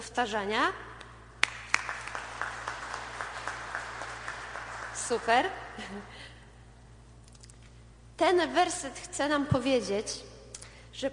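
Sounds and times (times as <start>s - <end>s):
speech: 0.0s - 0.9s, 5.1s - 6.2s, 8.2s - 10.3s
group clapping hands: 1.4s - 5.6s.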